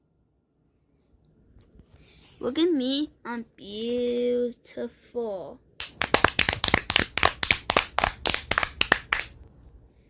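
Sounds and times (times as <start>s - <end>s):
speech: 2.4s - 5.7s
clapping: 5.8s - 9.4s.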